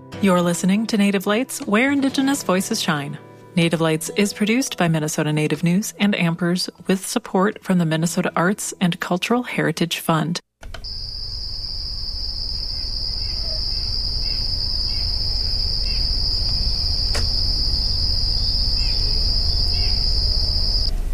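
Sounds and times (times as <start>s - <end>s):
speech: 0.2s - 11.0s
insects chirping outdoors: 10.8s - 20.9s.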